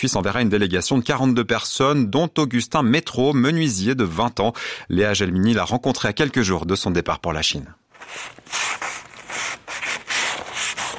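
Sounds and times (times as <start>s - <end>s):
speech: 0.0s - 8.8s
hand sanding of wood with sandpaper: 8.0s - 10.9s.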